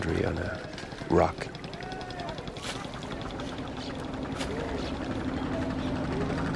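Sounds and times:
boat engines droning on a busy river: 0:00.0 - 0:06.5
indistinct voices: 0:00.0 - 0:06.5
speech: 0:00.2 - 0:01.6.

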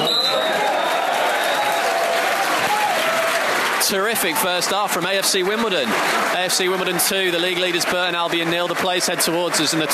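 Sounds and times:
high whistles: 0:00.0 - 0:01.9
football stadium crowd roaring and applauding: 0:00.0 - 0:09.9
speech: 0:03.9 - 0:09.9.

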